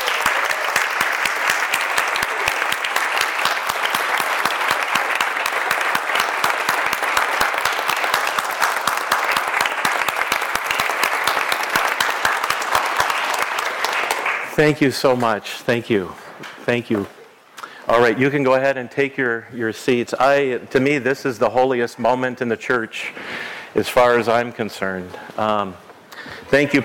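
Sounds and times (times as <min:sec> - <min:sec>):
church congregation applauding the confirmation group: 0:00.0 - 0:15.1
speech: 0:14.6 - 0:17.2, 0:17.9 - 0:25.8, 0:26.5 - 0:26.8.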